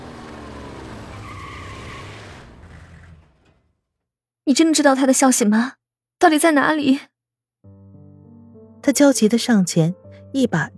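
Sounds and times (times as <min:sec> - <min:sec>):
car tires squealing in a skid: 0:00.0 - 0:03.6
car engine roaring: 0:00.0 - 0:03.7
speech: 0:04.5 - 0:07.1, 0:08.8 - 0:10.7.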